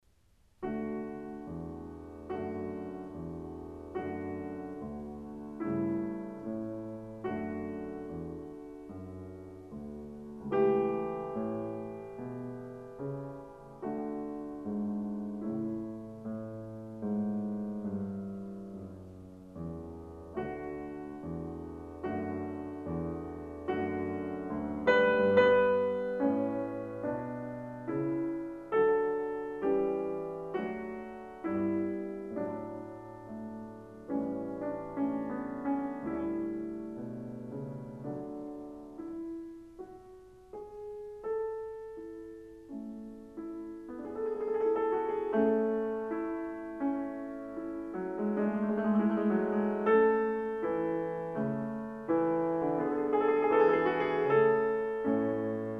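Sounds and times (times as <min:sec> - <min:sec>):
piano sonata in A major: 0:00.0 - 0:55.7.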